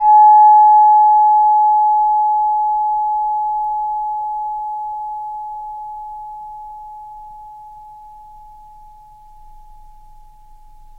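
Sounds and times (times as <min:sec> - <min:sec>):
chime: 0:00.0 - 0:10.9.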